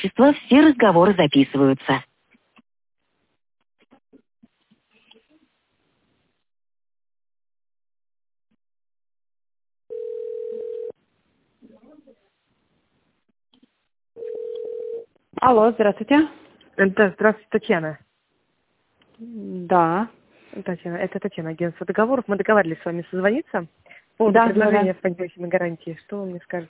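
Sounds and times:
speech: 0.1s - 2.1s, 15.4s - 18.1s, 19.2s - 26.6s
telephone ringback tone while waiting on hold: 9.9s - 10.9s, 14.2s - 15.1s.

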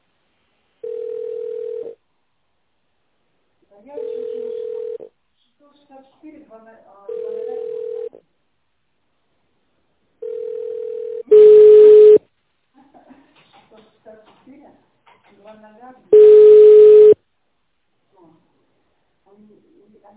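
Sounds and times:
telephone ringback tone while an office call is transferred: 0.8s - 2.0s, 4.0s - 5.1s, 7.1s - 8.2s, 10.2s - 12.2s, 16.1s - 17.2s.

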